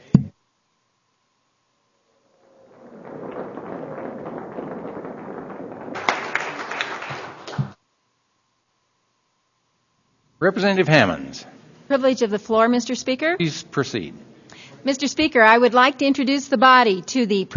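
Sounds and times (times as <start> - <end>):
audience applause in legislative chamber: 3.1 - 7.8
speech: 10.4 - 14.2, 14.8 - 17.5.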